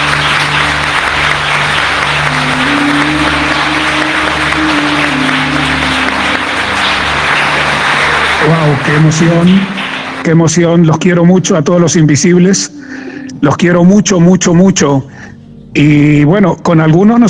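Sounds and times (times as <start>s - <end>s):
applause from a large audience of 400 people: 0.0s - 10.9s
speech: 8.8s - 17.2s.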